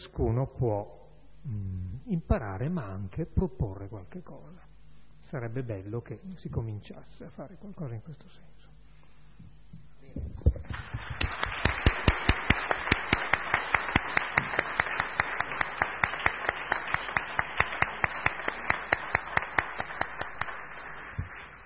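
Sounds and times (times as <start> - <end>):
speech: 0.2 - 4.7, 5.3 - 8.6
crowd applauding: 10.6 - 21.6.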